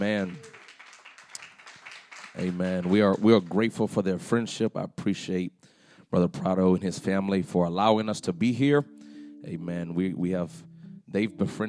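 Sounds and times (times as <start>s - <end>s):
speech: 0.0s - 0.5s, 2.4s - 11.6s
audience clapping: 0.0s - 4.0s.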